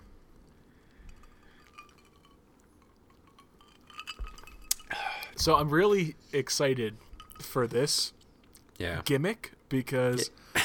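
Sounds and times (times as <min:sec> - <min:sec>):
sipping a drink from a glass: 0:01.1 - 0:05.3
speech: 0:05.4 - 0:08.2, 0:08.8 - 0:10.4.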